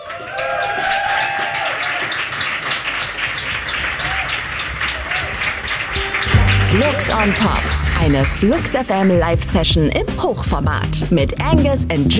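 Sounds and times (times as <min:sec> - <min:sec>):
audience applause: 0:00.0 - 0:09.2
speech: 0:06.7 - 0:12.1.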